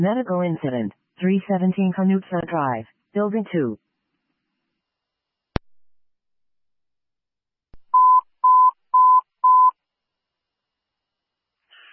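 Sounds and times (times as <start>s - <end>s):
speech: 0.0s - 3.8s
fire dispatch paging tone beeps: 8.0s - 9.7s.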